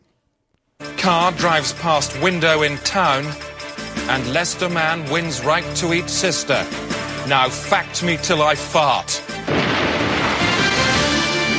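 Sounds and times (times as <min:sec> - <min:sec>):
speech: 0:01.0 - 0:09.3
rumbling explosions: 0:09.4 - 0:11.5.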